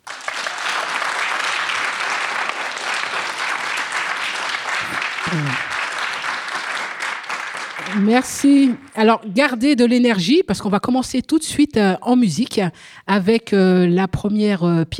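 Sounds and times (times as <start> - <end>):
audience applause: 0.0 - 9.0
speech: 5.3 - 5.7, 7.9 - 14.9.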